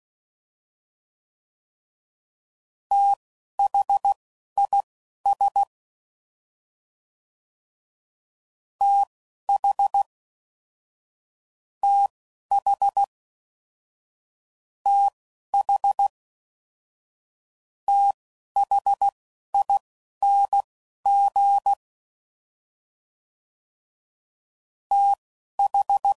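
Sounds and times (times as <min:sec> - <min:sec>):
Morse code code groups at 10 WPM: 0:02.9 - 0:05.7, 0:11.8 - 0:13.1, 0:14.9 - 0:16.1, 0:17.9 - 0:21.8, 0:24.9 - 0:26.1.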